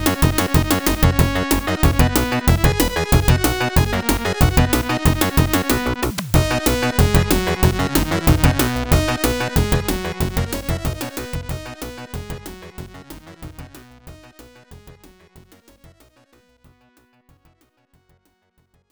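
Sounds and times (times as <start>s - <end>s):
galop music: 0.0s - 13.8s.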